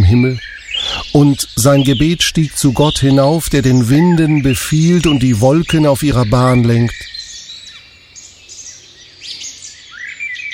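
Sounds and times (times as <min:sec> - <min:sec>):
birds chirping and singing: 0:00.0 - 0:10.5
speech: 0:00.1 - 0:07.1.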